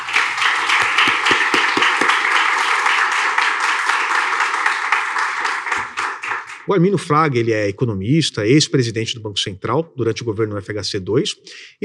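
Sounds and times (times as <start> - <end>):
audience applause: 0.0 - 6.7
speech: 6.7 - 11.8.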